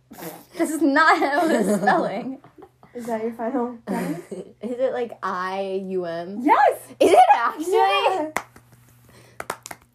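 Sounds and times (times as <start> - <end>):
speech: 0.2 - 8.4
single person clapping hands: 8.4 - 9.9.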